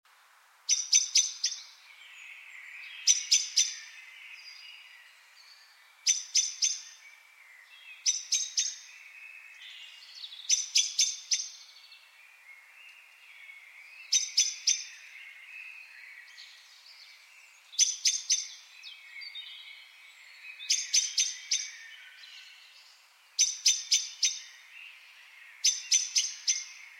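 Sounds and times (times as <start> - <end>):
common blackbird chink calls: 0.7 - 1.7, 3.0 - 4.0, 6.0 - 7.0, 8.0 - 8.9, 10.4 - 11.7, 14.1 - 15.2, 17.8 - 18.6, 20.6 - 22.3, 23.4 - 24.6, 25.6 - 26.9
other birds twittering: 0.7 - 5.0, 5.6 - 26.9.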